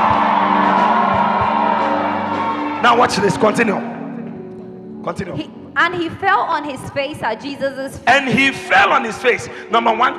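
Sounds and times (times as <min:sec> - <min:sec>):
audience shouting in praise: 0:00.0 - 0:03.4
speech: 0:02.8 - 0:03.9, 0:05.0 - 0:10.1.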